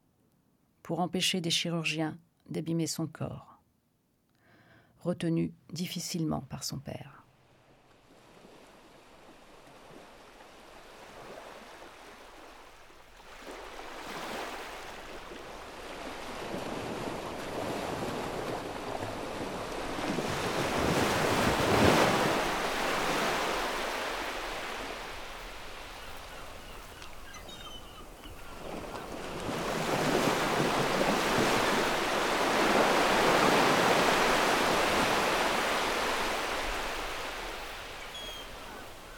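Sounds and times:
speech: 0.9 - 3.5, 5.0 - 7.2
waves breaking on a beach: 7.4 - 39.1.

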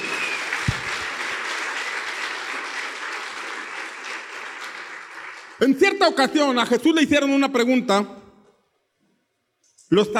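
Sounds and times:
loud audience applause: 0.0 - 6.0
speech: 5.6 - 8.2, 9.9 - 10.1.

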